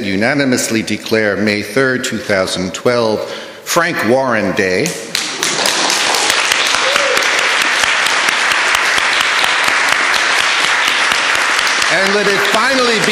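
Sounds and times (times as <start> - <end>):
speech: 0.0 - 5.1, 12.0 - 13.0
academic senate audience applauding in appreciation: 5.1 - 13.0.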